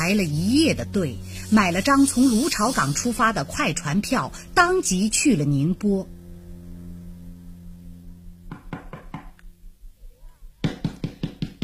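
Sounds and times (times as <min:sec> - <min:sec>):
speech: 0:00.1 - 0:06.2
knocking on a door: 0:08.5 - 0:09.3, 0:10.6 - 0:11.6.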